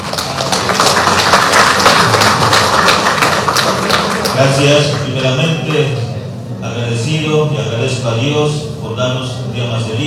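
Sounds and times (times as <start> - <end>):
applause: 0.0 - 5.4
speech: 4.4 - 6.0, 7.1 - 10.0.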